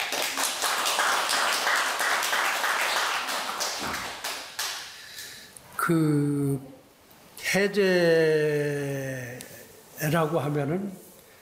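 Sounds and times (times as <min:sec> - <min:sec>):
audience applause: 0:00.0 - 0:04.8
speech: 0:05.9 - 0:06.8, 0:07.5 - 0:09.4, 0:10.0 - 0:11.0.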